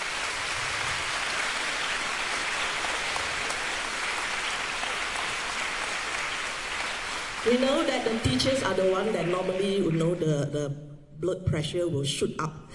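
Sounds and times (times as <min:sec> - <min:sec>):
audience applause: 0:00.0 - 0:10.2
speech: 0:07.4 - 0:12.6.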